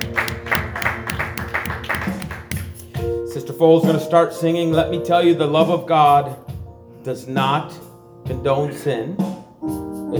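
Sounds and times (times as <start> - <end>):
audience clapping hands: 0.0 - 2.9
speech: 3.6 - 6.4, 7.0 - 10.1.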